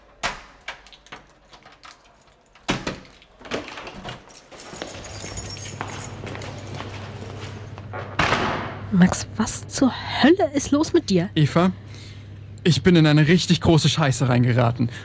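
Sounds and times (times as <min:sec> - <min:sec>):
keys rattling: 0:00.0 - 0:08.1
steady low mechanical hum: 0:00.0 - 0:15.0
door opening clunk: 0:00.1 - 0:08.8
speech: 0:08.9 - 0:15.0.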